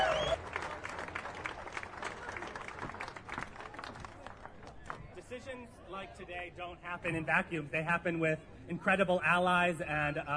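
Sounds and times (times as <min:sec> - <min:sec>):
audience applause: 0:00.0 - 0:05.0
speech: 0:05.4 - 0:10.3.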